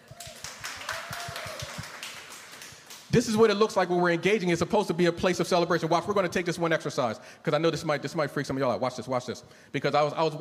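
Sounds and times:
crowd clapping hands in a steady brisk rhythm: 0.0 - 3.5
speech: 3.2 - 10.3.

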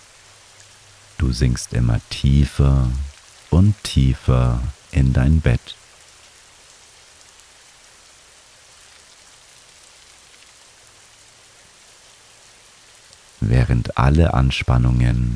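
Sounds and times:
rain falling: 0.0 - 15.3
speech: 1.2 - 5.8, 13.5 - 15.3.

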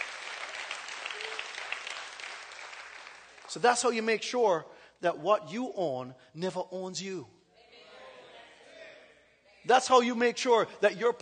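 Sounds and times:
audience clapping: 0.0 - 4.0
speech: 3.5 - 7.4, 9.6 - 11.2.

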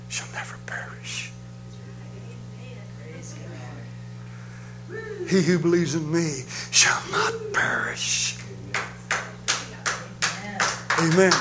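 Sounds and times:
speech: 0.1 - 1.4, 4.9 - 8.9, 11.0 - 11.4
audience clapping hands: 8.3 - 11.4.

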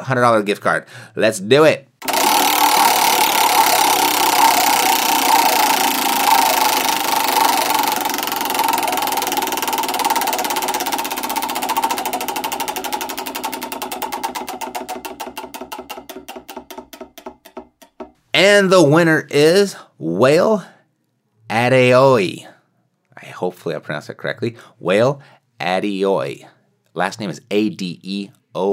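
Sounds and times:
speech: 0.0 - 1.9, 18.5 - 20.7, 21.6 - 22.5, 23.2 - 28.7
prize wheel spinning: 2.0 - 18.2.

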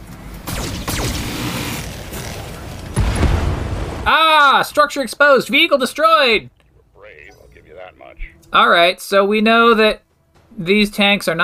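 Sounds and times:
medium lasers firing in a video game: 0.4 - 3.8
speech: 4.1 - 6.6, 7.9 - 10.0, 10.6 - 11.4.

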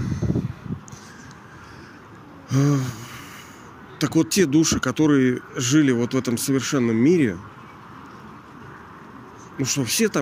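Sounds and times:
wind buffeting a microphone: 0.0 - 1.1
speech: 2.5 - 3.0, 4.0 - 7.5, 9.6 - 10.2.

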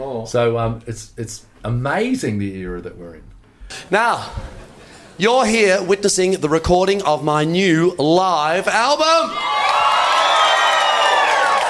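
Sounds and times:
speech: 0.2 - 4.6, 5.2 - 9.6
audience cheering: 9.0 - 11.6.

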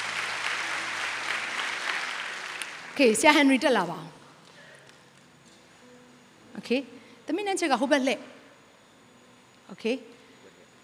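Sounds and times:
audience applause welcoming someone onto a stage: 0.0 - 3.2
speech: 3.0 - 4.2, 6.6 - 8.3, 9.8 - 10.2.

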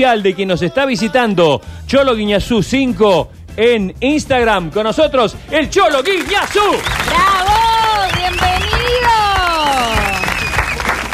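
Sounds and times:
speech: 0.0 - 7.3
studio applause: 5.7 - 11.1
falling whistle-like sound-effect tone: 9.9 - 10.9.

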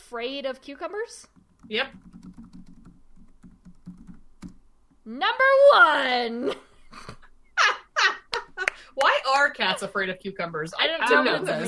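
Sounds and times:
speech: 0.1 - 2.4, 5.1 - 6.7, 8.8 - 11.6
typing on a computer keyboard: 1.3 - 4.6.

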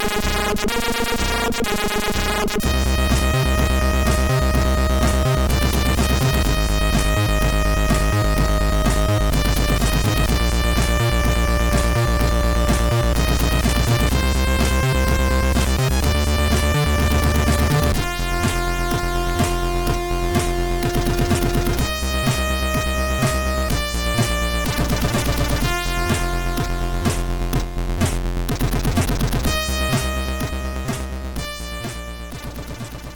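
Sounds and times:
C64 video game soundtrack music: 0.0 - 33.1.

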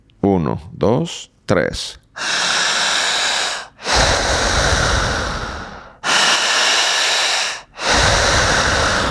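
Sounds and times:
speech: 0.3 - 2.5
strong deep breathing in: 2.2 - 9.0.

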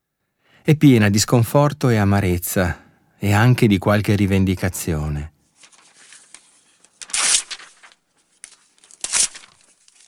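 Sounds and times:
speech: 0.7 - 5.3
paper tearing: 5.6 - 10.0.

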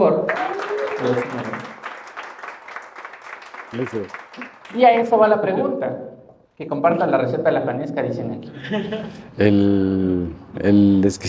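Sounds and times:
speech: 0.0 - 0.4, 1.0 - 1.8, 3.7 - 11.2
crowd applause: 0.2 - 5.1.

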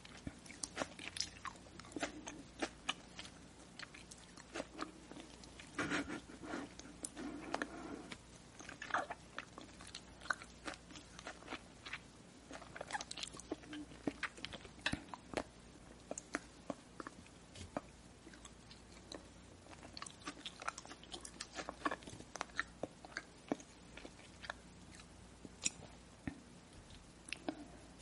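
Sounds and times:
faint steady low hum: 0.0 - 28.0
person chewing and swallowing food: 0.0 - 28.0.

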